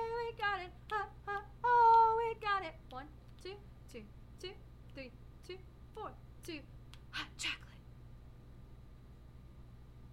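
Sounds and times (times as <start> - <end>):
soprano singing: 0.0 - 6.7.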